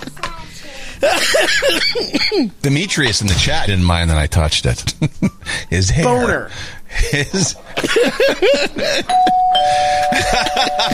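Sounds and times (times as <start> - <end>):
laughter: 1.0 - 2.2, 7.0 - 9.2, 10.0 - 10.9
speech: 1.0 - 10.9
electronic doorbell sound effect: 9.1 - 10.9.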